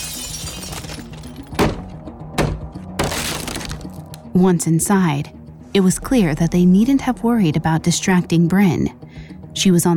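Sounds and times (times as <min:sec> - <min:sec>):
brick smashing through a bedroom window: 0:00.0 - 0:04.2
speech: 0:04.4 - 0:09.9.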